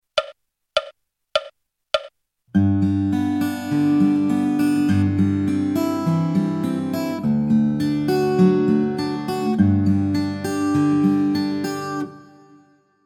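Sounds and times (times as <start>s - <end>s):
fingerstyle guitar: 2.5s - 12.5s.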